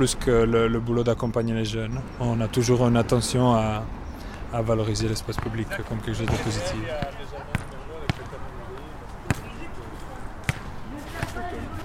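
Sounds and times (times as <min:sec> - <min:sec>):
speech: 0:00.0 - 0:07.6
voices murmuring: 0:00.0 - 0:11.8
basketball bouncing on an outdoor court in front of the Merlot: 0:06.3 - 0:08.4, 0:09.3 - 0:09.5, 0:10.4 - 0:11.4.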